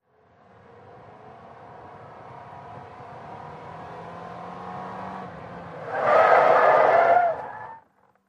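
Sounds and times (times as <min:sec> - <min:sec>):
compact small car revving and skidding through 180 degrees: 0:04.7 - 0:08.0.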